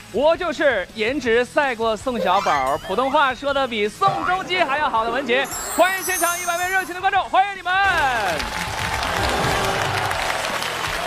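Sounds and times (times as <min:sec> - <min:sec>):
speech: 0:00.1 - 0:08.7
brief falling tone: 0:02.2 - 0:07.4
studio audience applause: 0:07.8 - 0:11.0.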